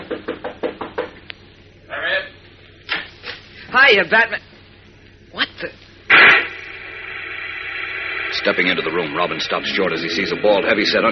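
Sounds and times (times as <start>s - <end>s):
knocking on a door: 0.0s - 1.1s
speech: 3.7s - 4.5s, 5.4s - 5.8s, 8.4s - 11.1s.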